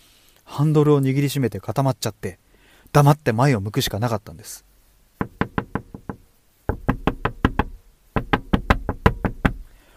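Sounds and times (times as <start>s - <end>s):
speech: 0.6s - 4.7s
knocking on a car window: 5.2s - 9.7s.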